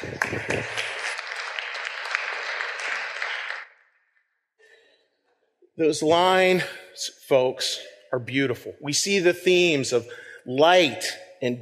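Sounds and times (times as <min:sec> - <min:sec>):
little round of applause: 0:00.0 - 0:03.8
speech: 0:05.8 - 0:11.6.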